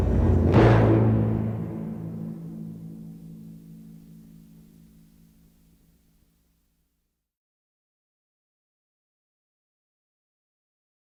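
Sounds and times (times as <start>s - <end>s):
eerie heavy echo soundtrack: 0.0s - 5.0s.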